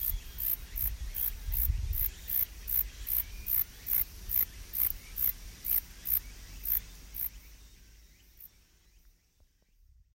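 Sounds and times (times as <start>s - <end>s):
grasshopper: 0.0s - 7.4s.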